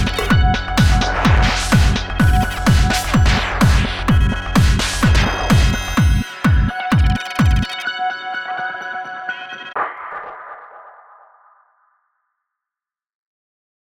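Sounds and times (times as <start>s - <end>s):
industrial techno music: 0.0s - 10.5s.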